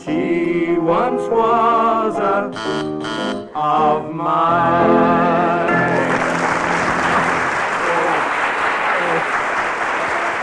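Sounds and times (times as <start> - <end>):
speech: 0.1 - 5.7
sustained sung notes: 2.5 - 3.6
audience cheering and applauding after a sung performance: 5.9 - 10.4.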